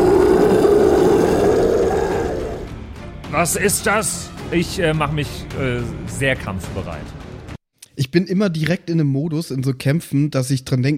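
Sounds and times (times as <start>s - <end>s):
game master imitating a creature's roar: 0.0s - 2.7s
speech: 3.4s - 7.2s, 8.0s - 10.9s.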